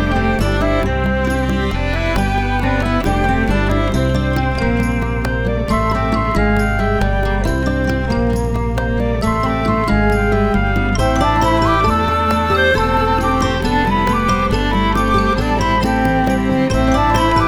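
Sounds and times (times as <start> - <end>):
instrumental music: 0.0 - 17.4.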